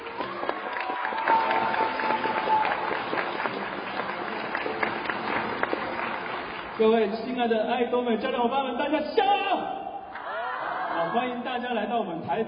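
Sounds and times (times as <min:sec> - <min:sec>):
audience applause: 0:00.0 - 0:07.1
speech: 0:06.8 - 0:09.5, 0:11.1 - 0:12.4.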